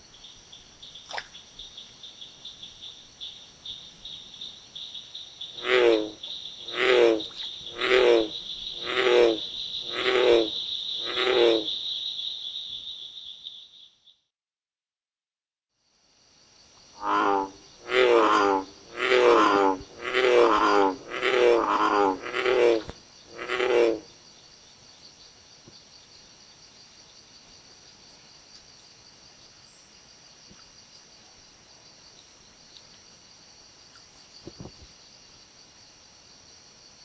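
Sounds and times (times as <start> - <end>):
Lithobates catesbeianus frog low-pitched bellowing call: 5.5 - 12.1, 17.0 - 24.2.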